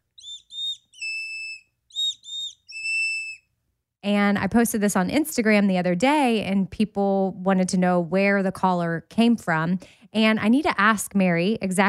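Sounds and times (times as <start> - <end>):
bird call whistle summoning birds: 0.2 - 3.5
speech: 4.0 - 11.8.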